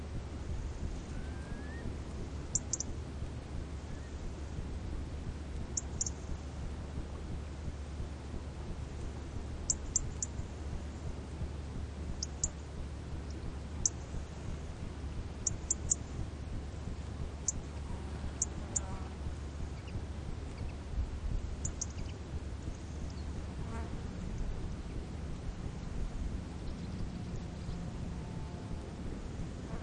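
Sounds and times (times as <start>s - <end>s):
faint ocean: 0.0s - 29.8s
insects: 0.0s - 29.8s
small birds tweeting by the sea: 1.1s - 3.0s, 3.8s - 4.4s, 5.7s - 6.4s, 9.6s - 10.6s, 12.1s - 14.2s, 15.4s - 16.2s, 17.4s - 20.8s, 21.4s - 23.4s, 26.6s - 28.0s.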